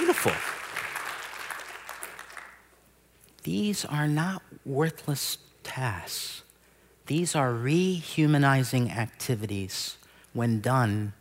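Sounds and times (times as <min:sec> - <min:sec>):
faint applause from a congregation in a church sanctuary: 0:00.0 - 0:02.6
speech: 0:00.2 - 0:00.6, 0:03.4 - 0:06.4, 0:07.1 - 0:11.1.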